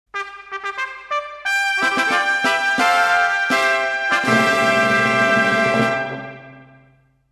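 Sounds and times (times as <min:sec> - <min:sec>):
trumpet call: 0:00.1 - 0:07.0.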